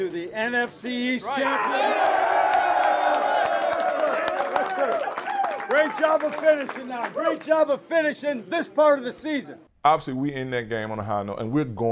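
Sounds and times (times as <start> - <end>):
speech: 0.0 - 2.4, 4.8 - 11.9
stadium crowd celebrating at MetLife Stadium: 1.2 - 8.8
clapping and cheers: 1.3 - 7.8.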